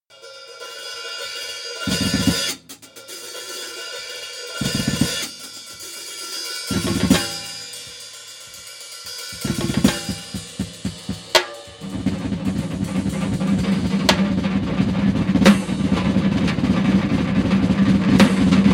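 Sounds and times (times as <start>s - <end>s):
rippling drum: 1.9s - 3.0s, 4.6s - 6.1s, 6.7s - 8.2s, 9.1s - 18.7s.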